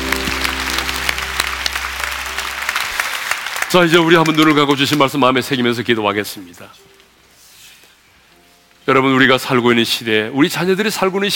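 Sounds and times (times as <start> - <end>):
audience clapping: 0.0 - 5.5
speech: 3.7 - 6.9, 8.9 - 11.3.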